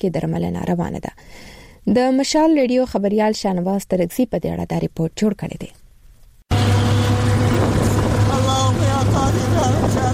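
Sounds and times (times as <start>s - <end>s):
speech: 0.0s - 5.8s
auto rickshaw engine on Peshawar Ring Road: 6.5s - 10.1s.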